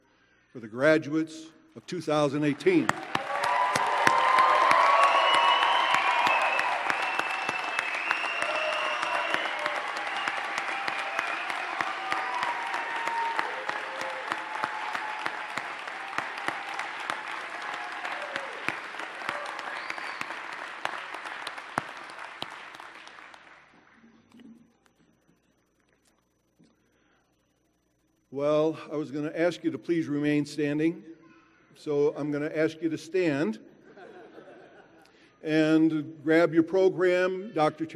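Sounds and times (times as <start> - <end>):
speech: 0.5 - 3.2, 28.9 - 31.1, 31.8 - 33.7, 35.5 - 37.9
audience applause for graduates: 2.6 - 23.8
laughter: 33.8 - 35.1.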